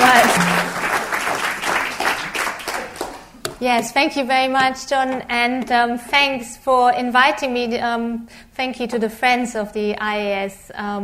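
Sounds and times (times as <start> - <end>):
evening audience applause welcoming a guest speaker: 0.0 - 3.2
speech: 3.6 - 11.0.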